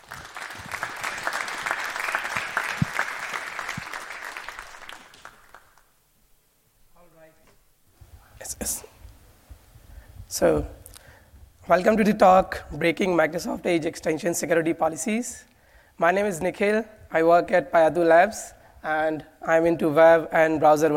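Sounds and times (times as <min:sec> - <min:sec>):
audience applause: 0:00.0 - 0:05.9
speech: 0:08.7 - 0:08.9, 0:10.4 - 0:10.8, 0:11.7 - 0:20.9.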